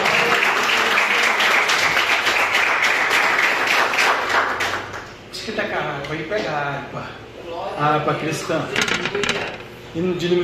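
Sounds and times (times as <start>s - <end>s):
crowd applauding: 0.0s - 5.1s
speech: 6.1s - 10.4s.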